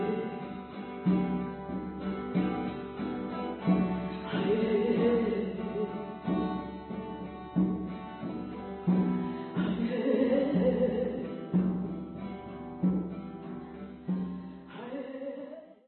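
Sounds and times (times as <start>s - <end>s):
person singing: 0.0s - 1.2s, 3.7s - 6.8s, 9.4s - 11.8s, 14.7s - 15.8s
drum: 0.0s - 14.8s
guitar: 0.0s - 15.8s.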